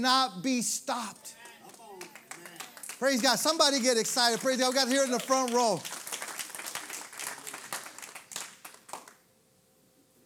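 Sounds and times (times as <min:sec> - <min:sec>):
speech: 0:00.0 - 0:01.4, 0:03.0 - 0:06.0
scattered clapping from a small crowd: 0:01.3 - 0:09.2.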